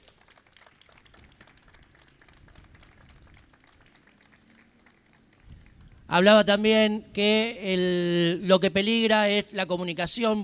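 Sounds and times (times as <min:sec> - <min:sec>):
crowd applauding at an event in Rosario: 0:00.0 - 0:06.1
speech: 0:06.1 - 0:10.4.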